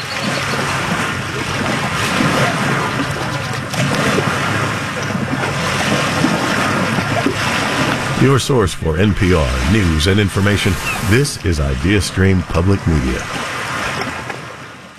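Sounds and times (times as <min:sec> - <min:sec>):
ocean waves lapping at Huntington Beach: 0:00.0 - 0:14.9
speech: 0:08.2 - 0:13.5.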